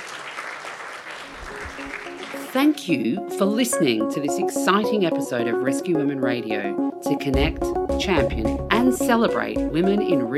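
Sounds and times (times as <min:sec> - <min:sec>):
audience applause: 0:00.0 - 0:02.8
speech: 0:01.8 - 0:10.3.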